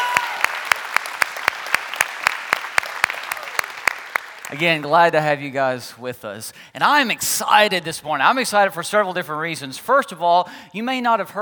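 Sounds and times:
rhythmic claps: 0.0s - 4.9s
church congregation applauding to welcome online viewers: 0.0s - 5.0s
speech: 4.5s - 11.4s.

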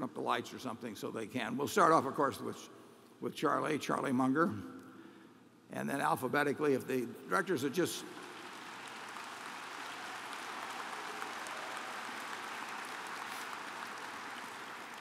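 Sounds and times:
speech: 0.1s - 4.8s, 5.7s - 8.3s
audience applause: 8.1s - 14.9s.

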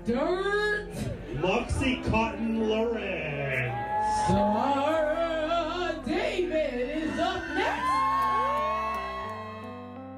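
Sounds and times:
speech: 0.0s - 0.6s, 1.4s - 5.0s
music: 0.0s - 10.1s
audience whooping and cheering for a drag performer: 3.3s - 5.5s, 6.9s - 10.1s.

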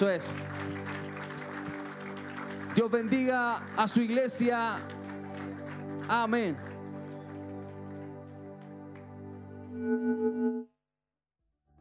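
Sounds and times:
speech: 0.0s - 0.8s, 2.8s - 5.0s, 6.1s - 6.7s
audience applause: 0.0s - 9.3s.

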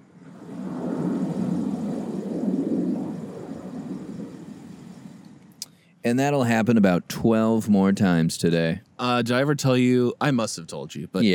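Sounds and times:
airplane flying overhead: 0.0s - 5.6s
speech: 6.0s - 11.3s.

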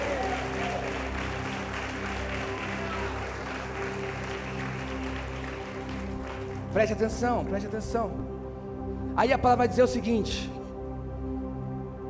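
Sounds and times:
one person clapping alone: 0.0s - 6.6s
speech: 6.8s - 8.4s, 9.2s - 10.6s.

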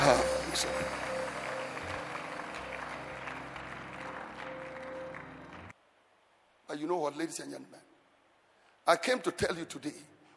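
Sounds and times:
crowd clapping: 0.0s - 5.8s
speech: 0.6s - 1.0s, 6.8s - 7.9s, 8.8s - 10.1s.

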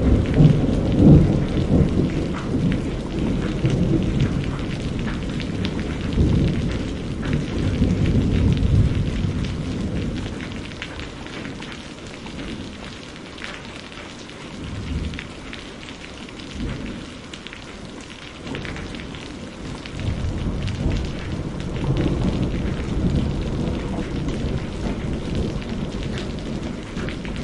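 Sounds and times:
deep rumbling thunder: 0.0s - 11.7s, 18.5s - 27.4s
hard rain in a thunderstorm: 0.0s - 27.4s.

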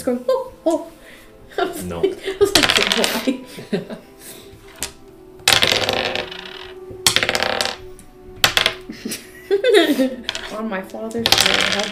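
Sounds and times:
speech: 0.0s - 4.4s, 9.0s - 11.9s
laughter: 1.6s - 4.2s, 8.9s - 10.3s
dice rolling on a tabletop: 2.5s - 3.3s, 4.7s - 8.9s, 10.3s - 10.6s, 11.2s - 11.9s.

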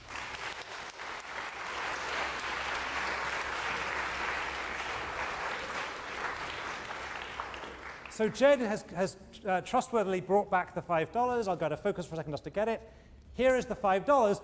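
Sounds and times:
audience applause: 0.0s - 8.3s
speech: 8.2s - 14.4s.

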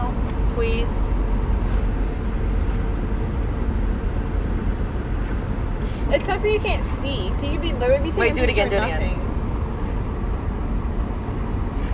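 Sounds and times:
cars passing in traffic rumble: 0.0s - 11.9s
speech: 0.6s - 1.2s, 6.1s - 9.3s.

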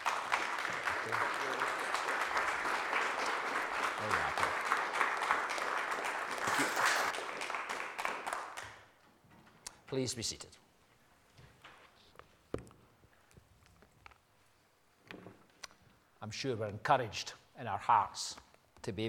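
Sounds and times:
audience round of applause: 0.0s - 8.8s
speech: 1.1s - 1.6s, 9.9s - 10.6s, 16.3s - 19.0s.

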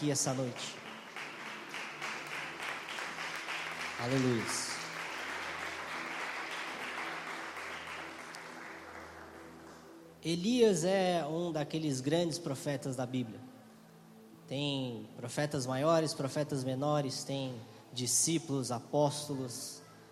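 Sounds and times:
speech: 0.0s - 0.8s, 4.0s - 4.7s, 10.2s - 13.5s, 14.5s - 19.8s
audience clapping and applauding: 0.0s - 10.0s.

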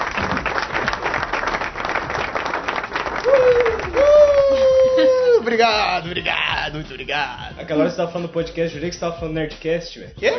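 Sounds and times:
applause: 0.0s - 5.0s
speech: 5.5s - 10.3s.

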